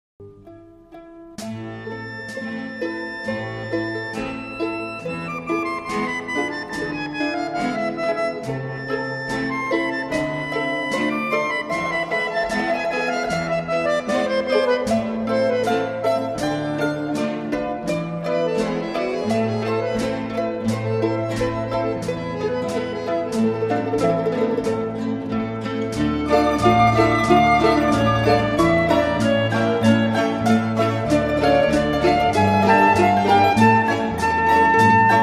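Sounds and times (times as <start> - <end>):
klezmer music: 0.2 - 35.2.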